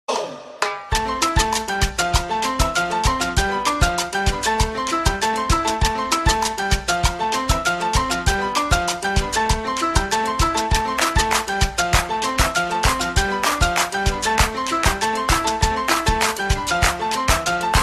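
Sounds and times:
salsa music: 0.1 - 17.8.

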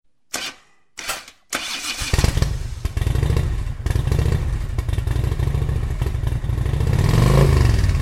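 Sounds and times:
Harley-Davidson motorcycle engine: 1.6 - 7.9.

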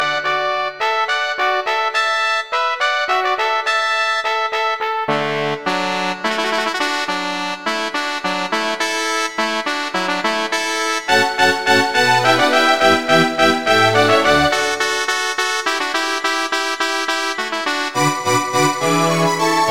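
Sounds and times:
music: 0.0 - 19.6.

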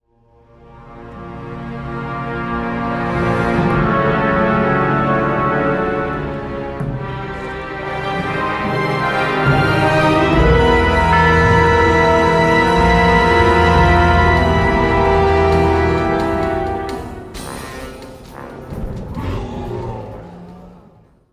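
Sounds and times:
epic crescendo: 0.4 - 21.3.

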